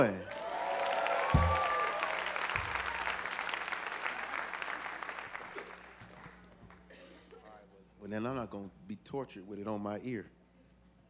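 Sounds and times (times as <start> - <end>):
speech: 0.0 - 0.3, 8.1 - 10.4
audience clapping: 0.0 - 7.0.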